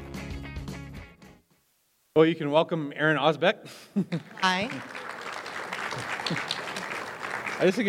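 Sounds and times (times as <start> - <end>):
speech: 2.2 - 5.0, 6.0 - 6.5, 7.6 - 7.8
audience applause: 4.2 - 7.8.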